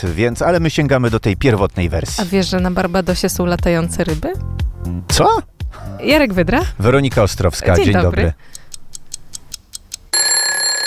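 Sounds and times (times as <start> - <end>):
speech: 0.0 - 8.5
alarm clock ticking: 8.4 - 10.4
alarm clock ringing: 10.2 - 10.8.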